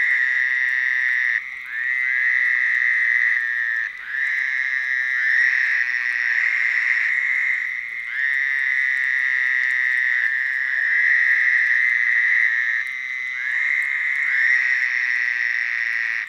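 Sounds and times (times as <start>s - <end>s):
toads trilling in chorus: 0.0s - 16.2s.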